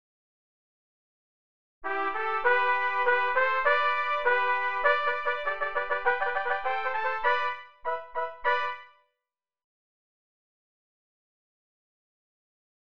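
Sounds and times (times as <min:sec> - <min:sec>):
bright fanfare: 0:01.8 - 0:09.0.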